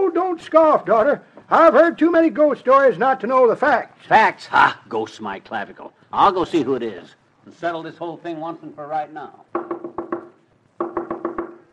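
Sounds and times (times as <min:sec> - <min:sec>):
speech: 0:00.3 - 0:09.4
knocking on a door: 0:09.5 - 0:11.7.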